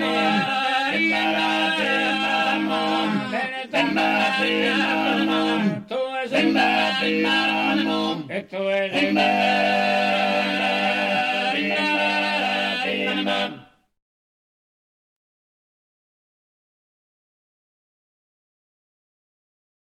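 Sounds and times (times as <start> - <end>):
men singing tenore chant: 0.0 - 13.7.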